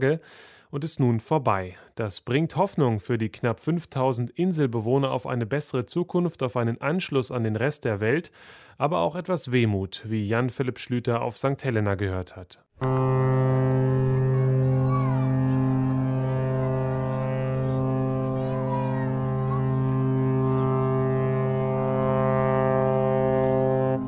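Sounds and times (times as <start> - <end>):
speech: 0.0 - 13.9
ship's horn of the RMS St. Helena mail ship: 12.8 - 24.0.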